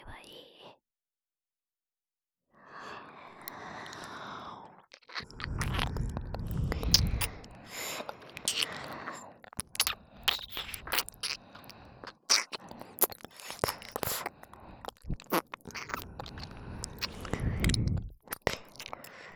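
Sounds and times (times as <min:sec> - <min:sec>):
shallow ASMR ear licking, reversed: 0:03.5 - 0:04.1, 0:04.9 - 0:19.3.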